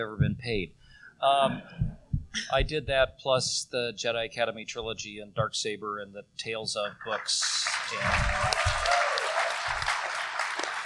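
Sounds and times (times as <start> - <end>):
speech: 0.0 - 8.8
audience applause: 7.2 - 10.8.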